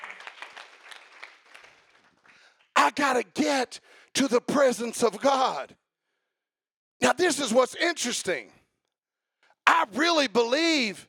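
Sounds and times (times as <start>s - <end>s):
audience clapping: 0.0s - 2.9s
speech: 2.8s - 5.8s, 7.0s - 8.6s, 9.8s - 11.0s.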